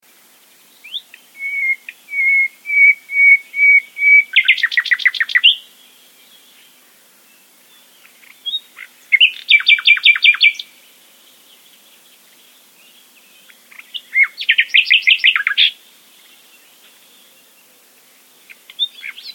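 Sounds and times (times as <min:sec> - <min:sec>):
common nightingale singing: 0:00.1 - 0:19.3.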